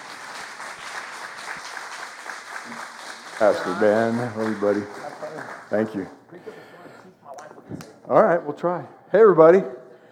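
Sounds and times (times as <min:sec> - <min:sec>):
audience applause: 0:00.0 - 0:06.1
speech: 0:02.7 - 0:05.0, 0:05.7 - 0:06.6, 0:08.1 - 0:09.8.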